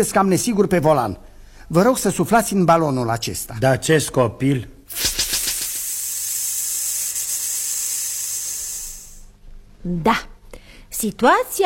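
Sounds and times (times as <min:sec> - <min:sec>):
speech: 0:00.0 - 0:05.2, 0:09.8 - 0:10.3, 0:11.0 - 0:11.6
air hissing out of punctured tyre: 0:04.9 - 0:09.4.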